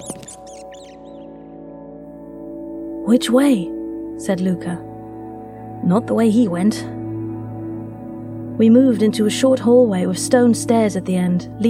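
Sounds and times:
rat screeching: 0.0s - 1.3s
speech: 3.1s - 4.9s, 5.8s - 7.0s, 8.6s - 11.6s.

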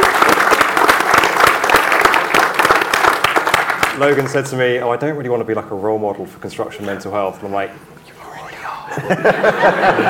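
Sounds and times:
audience applause: 0.0s - 4.3s
speech: 4.0s - 8.1s, 8.9s - 10.0s
laughter: 8.9s - 10.0s.

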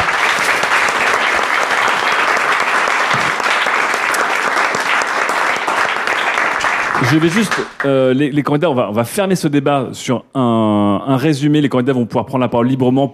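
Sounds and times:
audience applause: 0.0s - 7.9s
speech: 7.1s - 13.1s.

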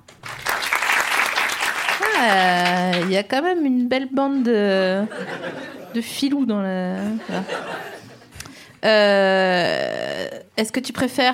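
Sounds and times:
audience applause as a vote: 0.0s - 3.1s
speech: 2.2s - 7.9s, 8.8s - 11.3s
laughter: 4.9s - 6.0s, 7.0s - 8.3s.

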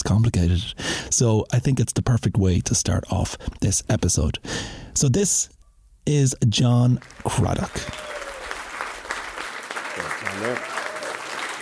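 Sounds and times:
speech: 0.1s - 8.1s, 10.4s - 10.7s
audience applause: 7.0s - 11.5s.

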